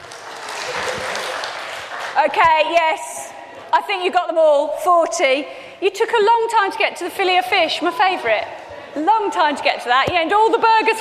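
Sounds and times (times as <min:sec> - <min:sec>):
round of applause: 0:00.0 - 0:02.3
speech: 0:02.2 - 0:10.9.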